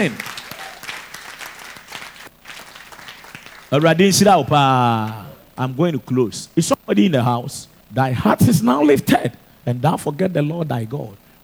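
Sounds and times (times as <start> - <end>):
speech: 0.0 - 0.4, 3.7 - 11.2
audience clapping: 0.0 - 3.9.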